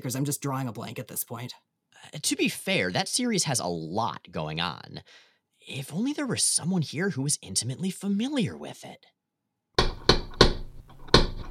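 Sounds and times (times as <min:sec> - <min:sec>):
speech: 0:00.0 - 0:09.2
loud sharp knocks on a door: 0:09.8 - 0:11.5.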